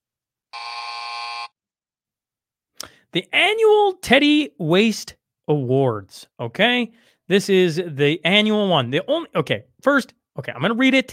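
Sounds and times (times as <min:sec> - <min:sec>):
harsh electronic buzzer: 0:00.5 - 0:01.5
speech: 0:03.1 - 0:11.1.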